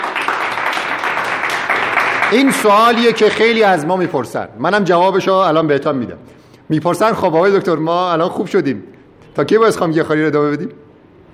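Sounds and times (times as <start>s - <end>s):
audience applause: 0.0s - 3.7s
speech: 2.3s - 10.8s.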